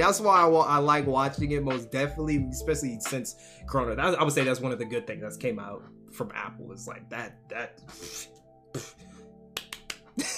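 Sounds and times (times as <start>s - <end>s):
speech: 0.0s - 9.1s, 10.2s - 10.3s
hand claps: 9.5s - 10.2s.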